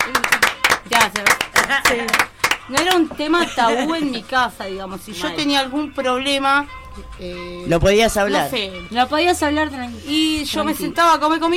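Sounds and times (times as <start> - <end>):
audience clapping during a talk show: 0.0 - 3.2
speech: 1.0 - 11.5.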